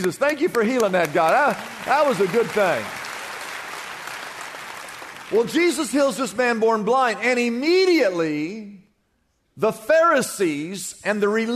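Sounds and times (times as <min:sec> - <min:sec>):
speech: 0:00.0 - 0:03.0, 0:05.3 - 0:08.8, 0:09.6 - 0:11.5
church audience applauding: 0:00.0 - 0:06.0.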